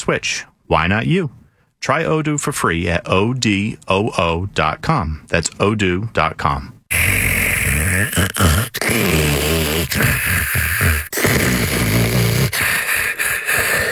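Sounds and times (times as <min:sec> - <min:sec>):
speech: 0:00.0 - 0:07.2, 0:08.0 - 0:12.0
snoring: 0:06.9 - 0:13.9.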